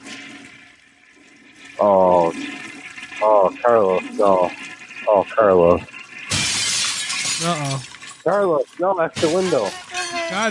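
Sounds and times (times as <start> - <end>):
toilet flushing: 0.0 - 6.6
speech: 1.8 - 6.0, 7.4 - 10.4.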